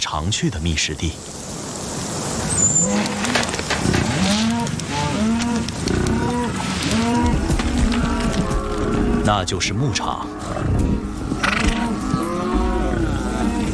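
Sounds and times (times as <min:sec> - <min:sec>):
speech: 0:00.0 - 0:01.6, 0:02.6 - 0:04.0, 0:09.3 - 0:11.1
hiss: 0:00.0 - 0:13.7
cattle lowing on a pasture: 0:02.8 - 0:09.3, 0:10.1 - 0:13.7.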